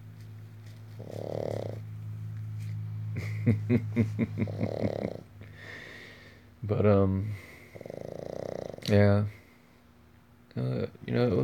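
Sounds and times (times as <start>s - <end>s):
pet snoring: 0.9s - 1.9s, 4.3s - 5.3s, 7.5s - 8.9s, 11.2s - 11.4s
speech: 1.0s - 1.4s, 3.4s - 5.2s, 6.7s - 7.5s, 8.8s - 9.4s, 10.6s - 11.4s.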